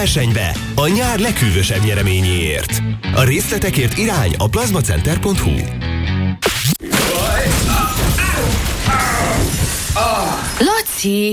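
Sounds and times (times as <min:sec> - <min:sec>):
speech: 0:00.0 - 0:06.5, 0:10.0 - 0:11.3
toilet being smashed and broken: 0:06.4 - 0:10.6.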